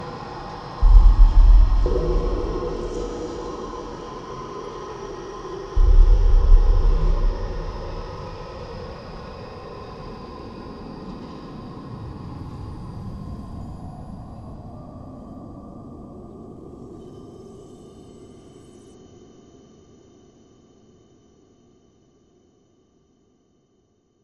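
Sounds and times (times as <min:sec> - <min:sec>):
dark ambient doom drones: 0:00.0 - 0:19.0.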